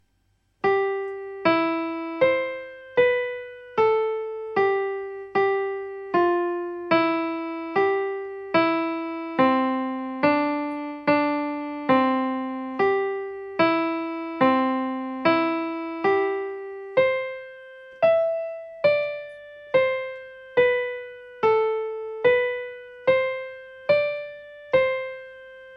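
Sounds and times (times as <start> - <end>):
piano: 0.0 - 25.7.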